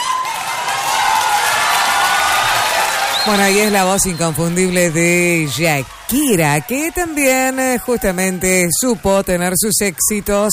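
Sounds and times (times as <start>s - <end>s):
audience applause at an evening music show: 0.0s - 10.5s
speech: 3.2s - 10.5s.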